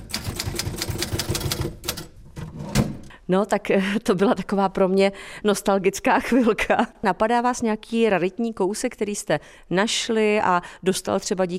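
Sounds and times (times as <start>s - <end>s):
typewriter keys clacking: 0.0s - 2.1s
speech: 3.3s - 11.5s.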